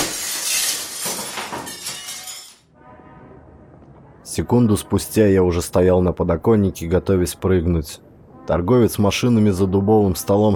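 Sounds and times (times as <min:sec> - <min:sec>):
chair smashing through window glass: 0:00.0 - 0:02.6
speech: 0:04.3 - 0:10.5.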